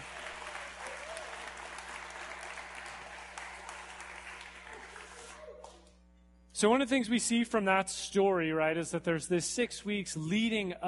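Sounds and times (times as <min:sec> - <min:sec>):
audience applause: 0:00.0 - 0:05.8
speech: 0:06.6 - 0:10.8.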